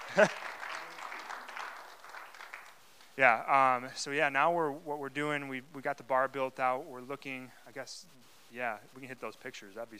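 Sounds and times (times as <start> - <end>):
audience applause: 0.0 - 3.2
speech: 0.2 - 0.5, 3.2 - 9.9.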